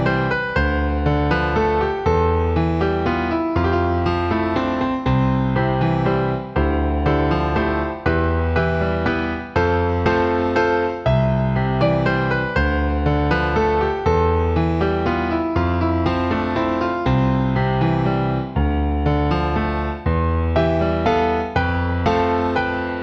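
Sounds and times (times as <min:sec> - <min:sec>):
calm gentle piano: 0:00.0 - 0:23.0.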